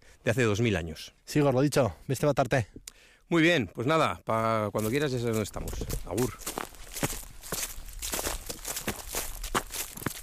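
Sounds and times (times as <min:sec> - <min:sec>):
speech: 0:00.2 - 0:06.6
footsteps on fallen autumn leaves in oak woods: 0:04.8 - 0:10.2.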